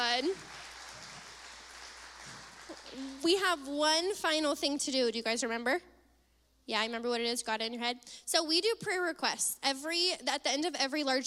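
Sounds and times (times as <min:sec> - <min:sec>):
applause: 0:00.0 - 0:03.3
speech: 0:00.2 - 0:00.5, 0:02.9 - 0:05.9, 0:06.7 - 0:11.2.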